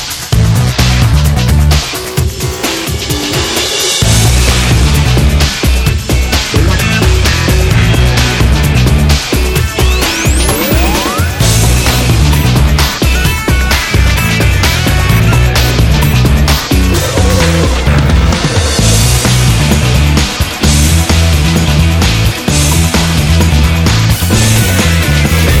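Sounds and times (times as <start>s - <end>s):
big riff: 0.3s - 25.5s.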